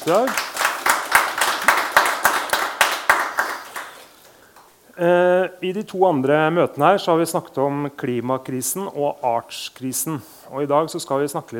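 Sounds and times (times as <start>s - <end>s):
speech: 0.0s - 0.5s, 5.0s - 11.5s
audience clapping: 0.0s - 4.7s.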